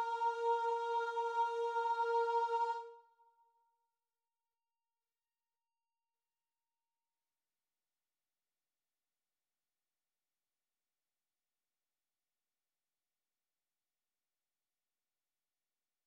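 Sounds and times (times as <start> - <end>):
choir singing: 0.0 - 3.1.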